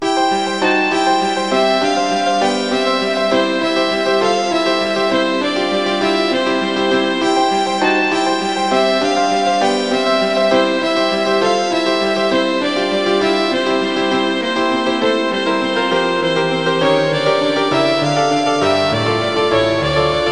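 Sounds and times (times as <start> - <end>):
piano: 0.0 - 20.3
violin: 0.0 - 20.3.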